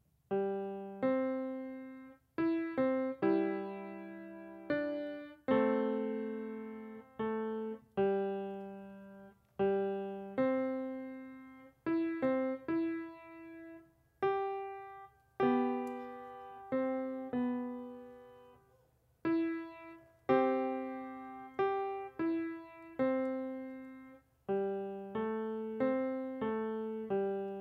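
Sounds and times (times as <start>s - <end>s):
instrumental music: 0.3s - 27.5s.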